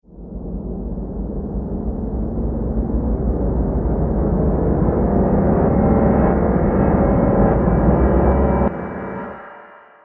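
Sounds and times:
horror dark piano: 0.1 - 10.0.

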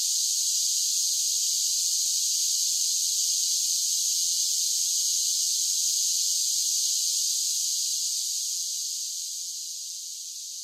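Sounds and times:
large groups of cicadas singing together: 0.0 - 10.6.

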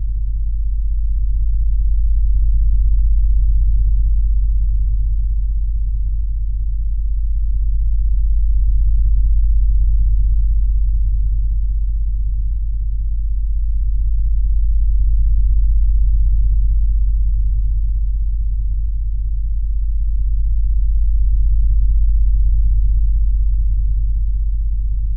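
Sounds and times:
LFE low bass rumble drone: 0.0 - 25.1.

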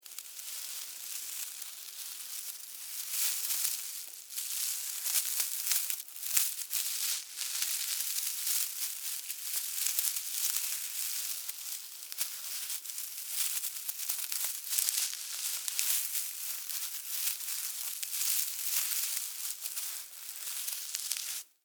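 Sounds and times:
animal critter moving through grass foliage: 0.1 - 21.5.

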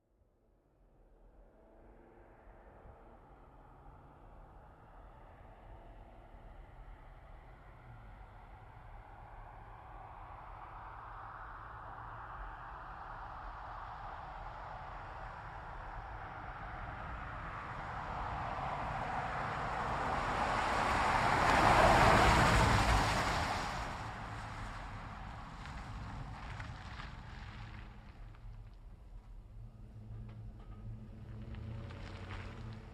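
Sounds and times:
GMC Savana truck turning a corner and stopping fast: 13.2 - 32.9.

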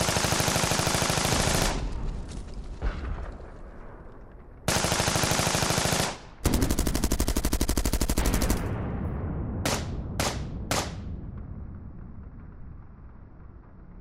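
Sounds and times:
modern war battlefield sounds: 0.0 - 3.8, 4.7 - 13.8.

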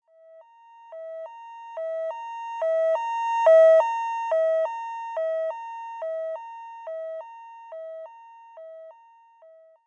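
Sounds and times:
fire truck siren passing by: 1.8 - 5.5.

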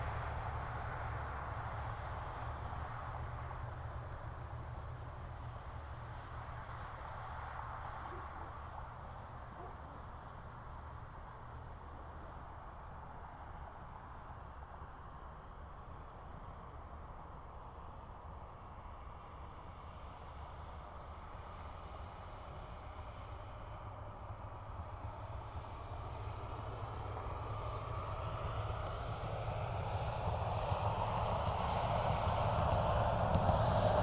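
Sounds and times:
medium far traffic on a bumpy two-lane country road: 0.0 - 34.0.

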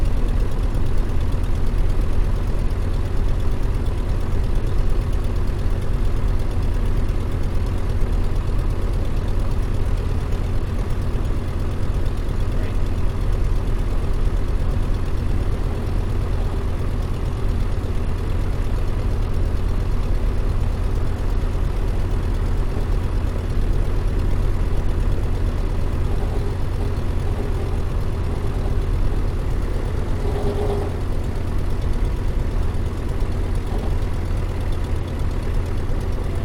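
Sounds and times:
Ryan PT22 propeller plane idling heard from interior: 0.0 - 36.4.

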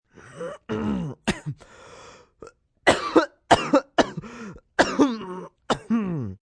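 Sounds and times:
man clearing throat: 0.4 - 1.6, 2.9 - 4.2, 4.8 - 6.4
man coughing and choking: 0.4 - 1.7, 2.9 - 6.4.

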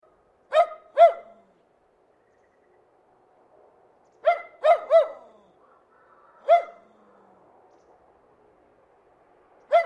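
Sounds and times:
terrier giving sharp yappy barks: 0.5 - 1.4, 4.2 - 5.3, 6.4 - 6.8.

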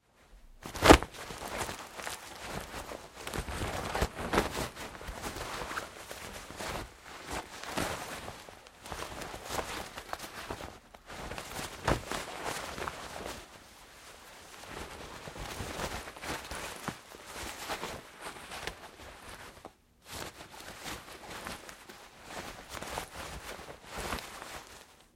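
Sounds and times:
nylon shorts rustling during fight moves struggling: 0.0 - 25.1.

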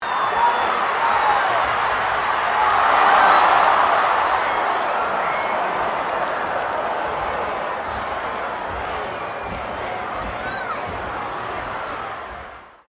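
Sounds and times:
crowd of 15,000 booing at a Rugby World Cup game: 0.0 - 12.8.

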